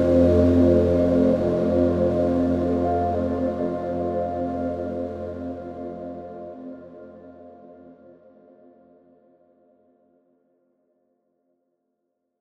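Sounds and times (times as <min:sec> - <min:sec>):
ambient menu music: 0:00.0 - 0:07.7.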